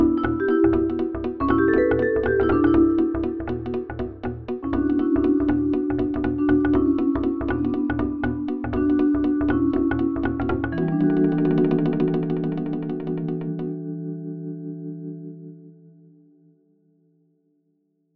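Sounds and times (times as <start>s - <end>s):
vibraphone: 0.0s - 14.0s.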